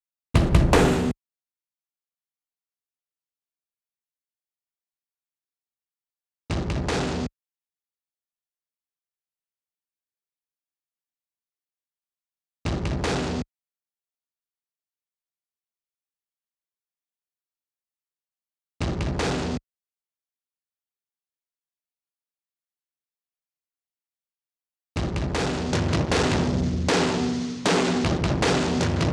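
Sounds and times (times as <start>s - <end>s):
drums: 0.4s - 1.2s, 6.5s - 7.3s, 12.7s - 13.5s, 18.8s - 19.6s, 25.0s - 29.1s.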